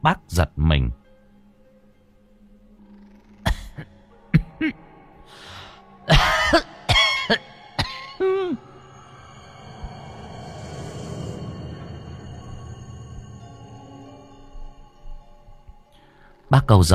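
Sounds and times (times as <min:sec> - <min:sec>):
speech: 0:00.0 - 0:01.0, 0:04.6 - 0:04.8, 0:06.1 - 0:06.7, 0:16.5 - 0:16.9
dry hacking cough: 0:06.1 - 0:08.6.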